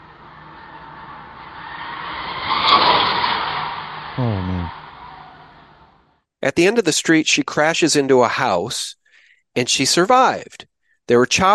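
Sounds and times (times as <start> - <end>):
car speeding through residential street: 0.0 - 6.0
speech: 6.5 - 9.0, 9.6 - 11.5.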